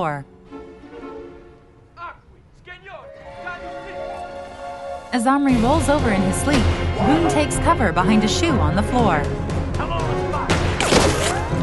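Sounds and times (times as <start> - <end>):
speech: 0.0 - 0.3, 5.1 - 9.9
dense busy film soundtrack: 0.0 - 11.6
gunshots in a film scene: 10.6 - 11.5.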